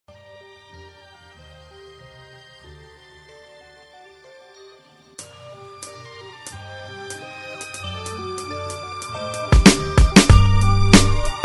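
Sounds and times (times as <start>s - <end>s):
beats: 5.2s - 11.4s.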